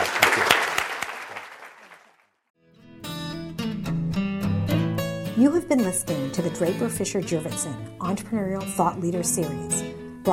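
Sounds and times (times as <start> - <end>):
audience applause: 0.0 - 2.4
bright music: 3.6 - 10.3
speech: 5.4 - 10.3.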